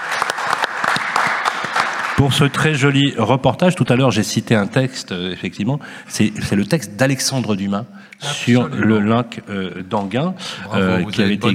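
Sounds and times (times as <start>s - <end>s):
crowd applauding: 0.0s - 3.0s
speech: 2.2s - 11.5s.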